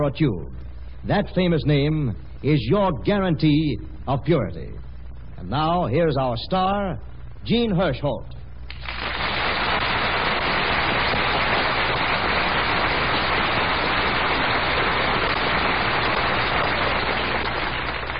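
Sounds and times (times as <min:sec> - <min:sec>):
speech: 0:00.0 - 0:09.0
studio audience applause: 0:08.7 - 0:18.1.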